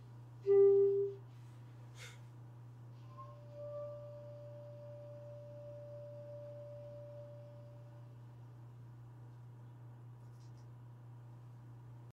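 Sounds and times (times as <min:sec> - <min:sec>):
clarinet: 0:00.4 - 0:01.3, 0:03.0 - 0:08.1.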